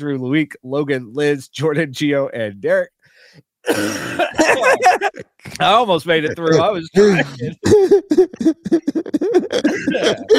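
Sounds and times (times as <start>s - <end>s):
speech: 0.0s - 10.3s
person coughing: 3.7s - 5.2s, 7.0s - 10.3s
laughter: 4.1s - 5.5s, 6.1s - 10.3s.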